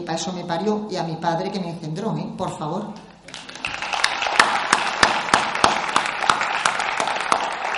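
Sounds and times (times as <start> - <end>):
speech: 0.0 - 3.4
applause: 3.3 - 7.7.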